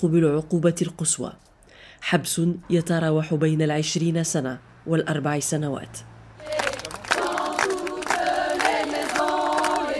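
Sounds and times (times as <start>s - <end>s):
speech: 0.0s - 6.6s
crowd applauding in courthouse: 6.4s - 9.9s.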